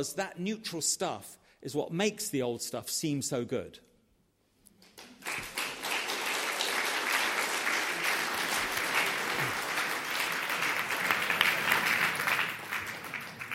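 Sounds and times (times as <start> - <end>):
speech: 0.0 - 3.9
debate audience applause: 5.0 - 13.5.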